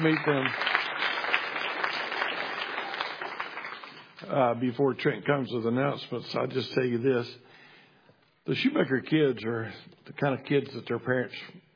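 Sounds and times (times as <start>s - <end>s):
speech: 0.0s - 0.7s, 4.3s - 7.6s, 8.5s - 11.6s
round of applause: 0.0s - 4.4s.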